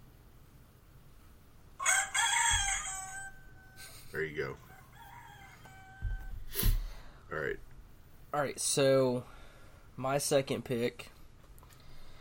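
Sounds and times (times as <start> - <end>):
rooster-crow phone alarm going off: 1.8 - 4.0, 4.6 - 6.5
speech: 4.1 - 4.7, 7.3 - 7.7, 8.3 - 9.4, 10.0 - 11.2.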